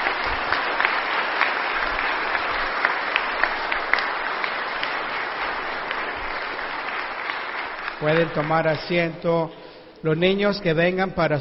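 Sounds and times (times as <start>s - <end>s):
audience applauding: 0.0s - 9.2s
speech: 8.0s - 11.3s.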